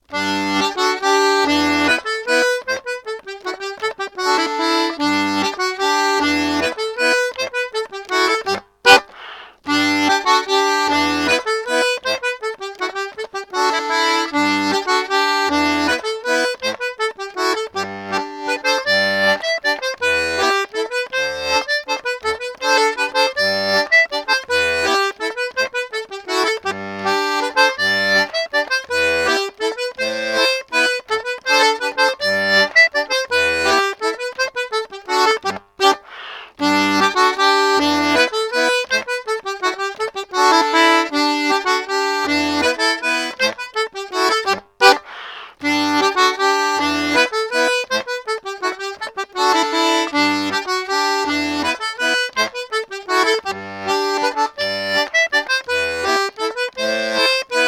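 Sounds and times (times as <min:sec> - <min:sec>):
mazurka: 0:00.0 - 0:57.6.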